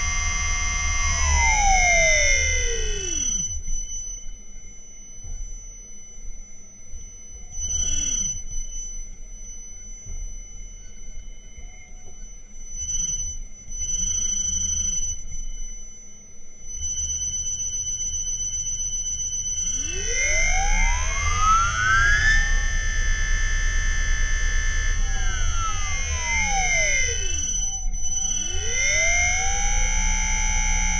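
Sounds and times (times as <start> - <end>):
Liebherr motor accelerating from zero to 2600 rpm with field weakening: 0.0 - 3.6, 19.7 - 30.9.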